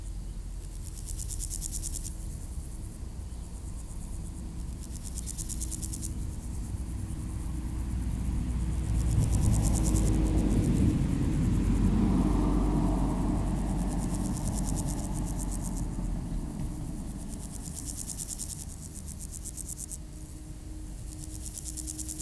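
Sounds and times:
grasshopper stridulating beside a road in Aveize, France: 0.0s - 22.2s.

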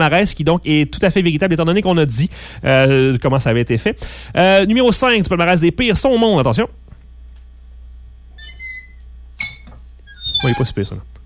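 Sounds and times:
speech: 0.0s - 6.8s, 10.4s - 11.1s
loosely fixed sign creaking on its base: 8.4s - 11.0s.

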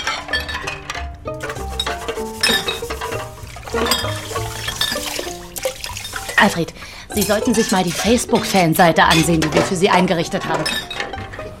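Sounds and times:
glasses and empty bottles clinking: 0.0s - 11.5s
liquid sloshing: 0.0s - 11.5s
speech: 6.4s - 10.9s.

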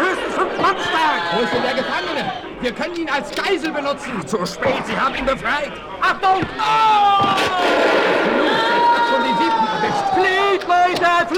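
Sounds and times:
shouting voices and battle cries: 0.0s - 5.4s, 6.0s - 11.3s
speech: 0.6s - 11.3s
gunshots during a battle: 7.3s - 8.7s.

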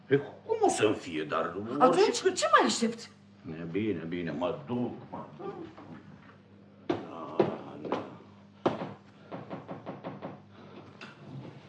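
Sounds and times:
speech: 0.1s - 5.8s
knock and quick taps on wood: 6.9s - 10.5s.

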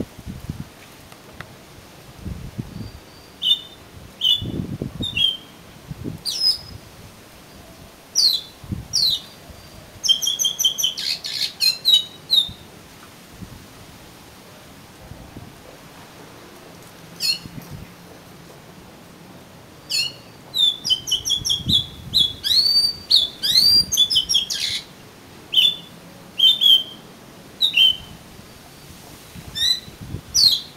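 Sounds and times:
oriental magpie-robin singing: 2.7s - 5.6s, 6.2s - 6.8s, 8.2s - 12.6s, 17.2s - 17.5s, 19.9s - 24.9s, 25.5s - 27.0s, 27.6s - 28.1s, 29.6s - 30.7s.

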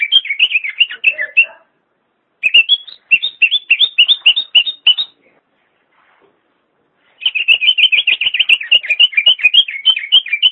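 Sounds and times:
leafbird singing: 0.0s - 1.7s, 2.4s - 5.2s, 7.2s - 10.4s.

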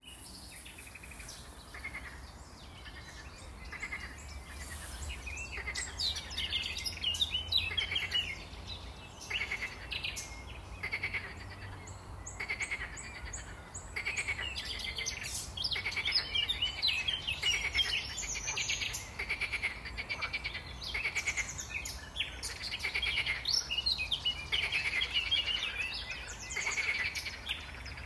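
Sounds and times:
birds chirping and twittering: 0.0s - 28.0s
frog chorus croaking: 1.1s - 4.3s, 9.3s - 10.0s, 10.7s - 15.1s, 15.7s - 23.8s, 24.5s - 28.0s.

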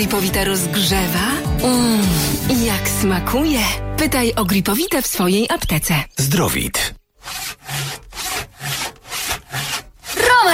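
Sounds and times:
speech: 0.0s - 7.4s
saw cutting lower branches off a Christmas tree: 7.2s - 10.5s.

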